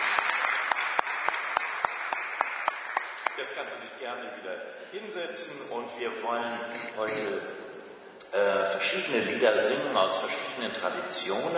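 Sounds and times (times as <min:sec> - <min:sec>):
applause: 0:00.0 - 0:03.6
speech: 0:03.4 - 0:07.6, 0:08.3 - 0:11.5.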